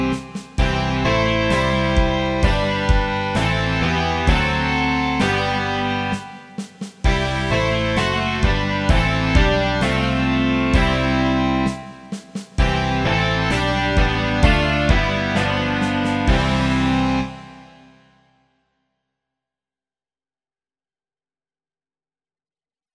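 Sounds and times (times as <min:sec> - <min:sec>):
rock music: 0:00.0 - 0:18.0.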